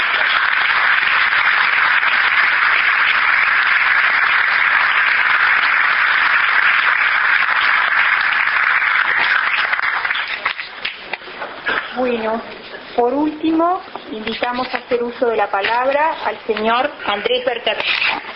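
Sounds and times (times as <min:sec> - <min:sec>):
audience applause: 0:00.0 - 0:11.9
speech: 0:13.4 - 0:18.2.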